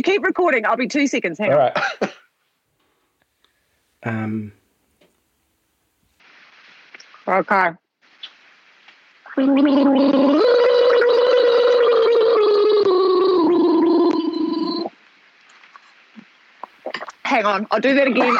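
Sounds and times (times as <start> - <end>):
speech: 0.0 - 2.2, 4.0 - 4.6, 7.3 - 7.8, 9.4 - 10.6, 17.3 - 18.3
gargling water: 9.3 - 15.0.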